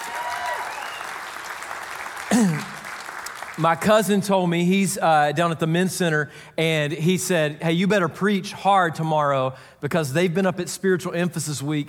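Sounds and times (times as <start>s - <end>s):
audience applause at a church service: 0.0s - 3.9s
speech: 3.6s - 11.8s.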